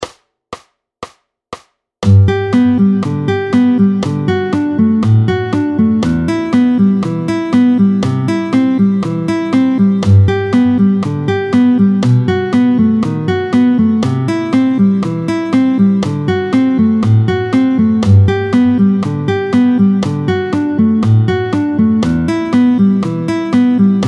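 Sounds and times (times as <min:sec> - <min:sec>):
fingerpicked arpeggios at 120: 0:02.1 - 0:24.0.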